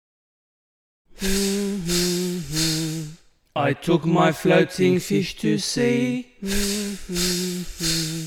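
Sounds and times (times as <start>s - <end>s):
speech: 1.2s - 2.0s, 3.6s - 8.2s
air hissing out of punctured inflatable: 1.2s - 3.2s, 6.4s - 8.2s.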